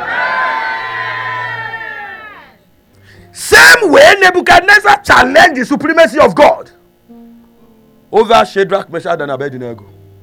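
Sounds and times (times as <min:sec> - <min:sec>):
crowd shouting together: 0:00.0 - 0:02.6
speech: 0:03.8 - 0:06.8, 0:08.1 - 0:10.0.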